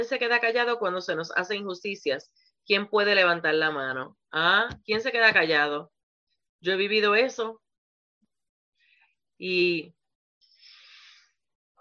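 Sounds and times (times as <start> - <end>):
speech: 0.0 - 6.0, 6.6 - 7.6, 9.4 - 10.0
pastor taking a breath during a sermon: 10.4 - 11.4.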